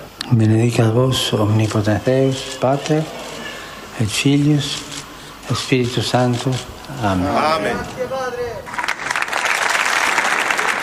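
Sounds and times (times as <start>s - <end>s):
speech: 0.3s - 3.2s, 4.0s - 4.9s, 5.5s - 8.8s
audience applause at papal audience: 8.7s - 10.8s.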